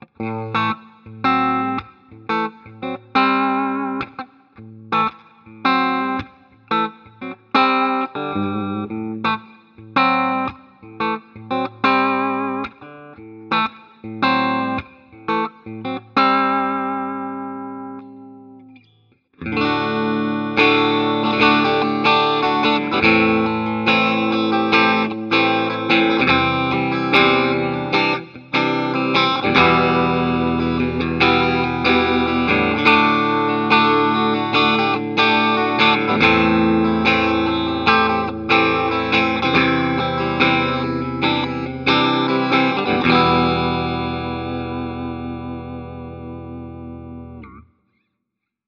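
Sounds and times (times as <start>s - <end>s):
clean electric guitar through 1x12 and 2x12 cabinets: 0.0s - 47.7s.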